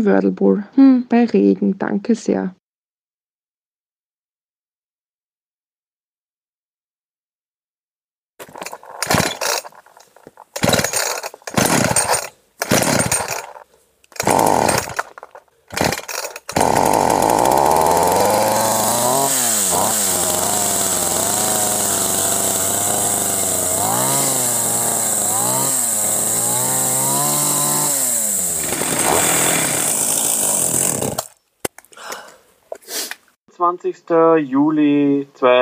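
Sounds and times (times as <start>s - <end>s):
speech: 0.0s - 2.6s, 33.8s - 35.6s
chainsaw cutting thick shrubs: 8.4s - 31.4s.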